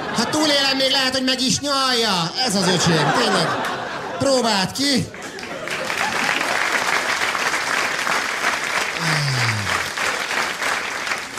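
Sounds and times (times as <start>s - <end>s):
laughter: 0.0s - 0.9s, 2.4s - 6.8s
speech: 0.4s - 5.2s, 9.0s - 9.4s
audience applause: 5.2s - 11.3s.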